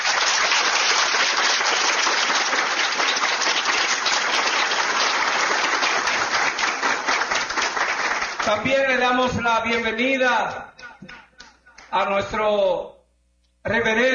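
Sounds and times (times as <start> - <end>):
applause: 0.0 - 9.9
speech: 8.5 - 11.2, 11.9 - 12.9, 13.6 - 14.1.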